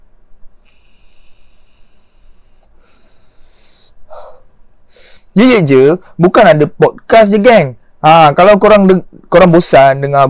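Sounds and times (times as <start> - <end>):
inhaling from a pod vape: 0.6 - 5.3
speech: 5.4 - 10.2.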